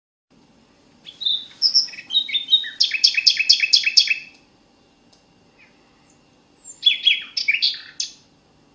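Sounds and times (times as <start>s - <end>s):
common nightingale singing: 1.0s - 4.4s, 5.5s - 8.3s.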